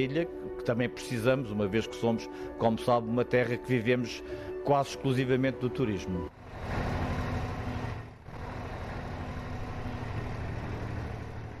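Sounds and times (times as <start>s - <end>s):
speech: 0.0s - 6.8s
tram running heard from on board: 6.4s - 11.5s.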